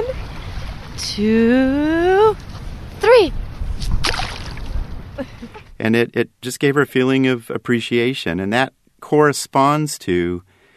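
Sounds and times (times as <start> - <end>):
speech: 1.0 - 2.4, 3.0 - 3.4, 5.2 - 10.5
pebbles thrown into water: 3.9 - 4.7.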